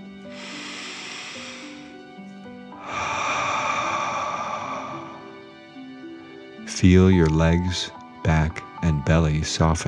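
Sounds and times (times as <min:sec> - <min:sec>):
deep breath in through the nose and out through the mouth: 0:00.2 - 0:06.4
speech: 0:06.8 - 0:09.8.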